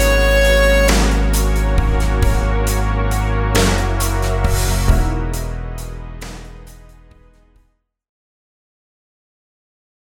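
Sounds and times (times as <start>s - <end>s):
compound rhythm pattern: 0.0s - 5.6s.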